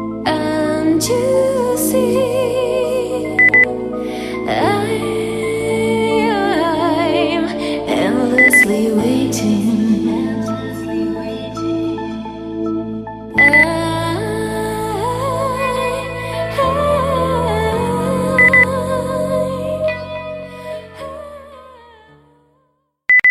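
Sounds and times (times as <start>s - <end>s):
person singing: 0.0s - 22.6s
endlessly waiting beep: 3.4s - 3.7s, 8.4s - 8.6s, 13.4s - 13.6s, 18.4s - 18.6s, 23.1s - 23.3s.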